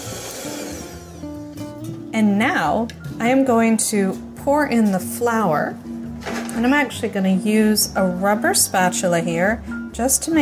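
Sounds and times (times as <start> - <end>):
egg yolk and sugar mixture being beaten: 0.0 - 1.2
speech: 2.2 - 6.0, 6.6 - 10.4.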